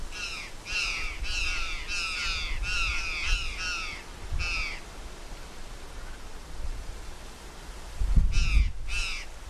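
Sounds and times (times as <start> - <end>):
curl-crested jay giving harsh crow-like calls: 0.1 - 4.9, 8.3 - 9.4.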